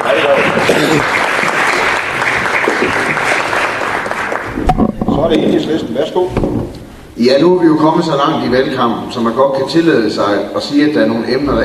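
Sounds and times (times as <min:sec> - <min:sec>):
audience applause: 0:00.0 - 0:04.7
speech: 0:05.3 - 0:11.6.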